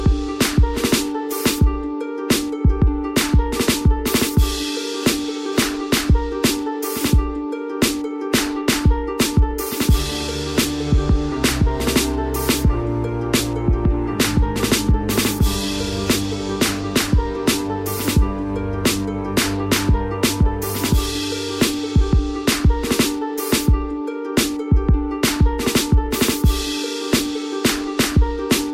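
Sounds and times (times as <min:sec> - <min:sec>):
instrumental music: 0:00.0 - 0:28.7.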